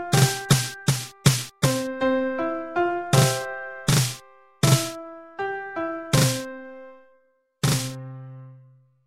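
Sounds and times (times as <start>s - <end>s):
piano: 0.0s - 9.0s
drum: 0.2s - 1.8s, 3.2s - 4.9s, 7.6s - 8.0s.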